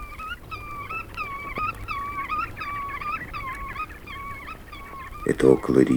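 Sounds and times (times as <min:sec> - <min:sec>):
black-tailed godwit singing: 0:00.0 - 0:05.9.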